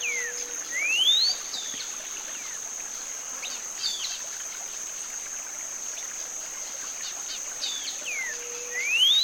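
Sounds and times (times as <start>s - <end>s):
whistled song of cinnamon-bellied saltator: 0.0s - 1.4s, 8.1s - 9.2s
steady high insect drone: 0.0s - 9.2s.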